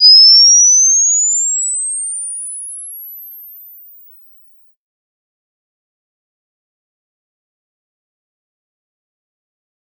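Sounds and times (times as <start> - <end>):
loud flash charging whine: 0.0 - 4.5.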